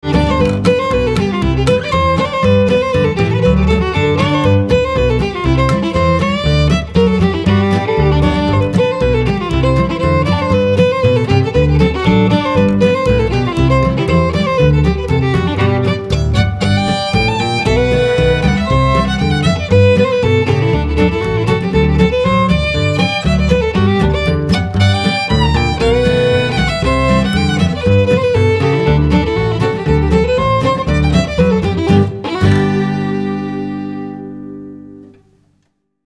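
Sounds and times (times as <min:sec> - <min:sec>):
violin: 0:00.0 - 0:35.3
bass: 0:00.0 - 0:35.4
guitar: 0:00.0 - 0:35.8.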